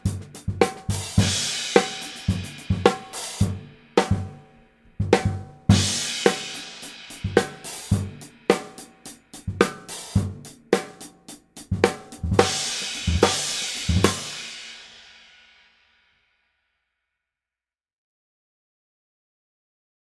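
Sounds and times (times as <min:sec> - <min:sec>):
18-inch Sabian Ozone cymbal: 0:00.0 - 0:16.0.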